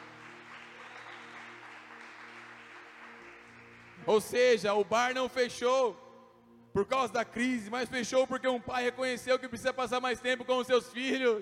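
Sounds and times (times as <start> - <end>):
applause: 0.0 - 4.7
speech: 4.0 - 6.0, 6.8 - 11.4.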